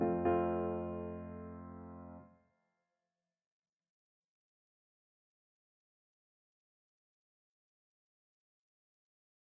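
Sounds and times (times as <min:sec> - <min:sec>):
art song for voice and piano: 0:00.0 - 0:02.2.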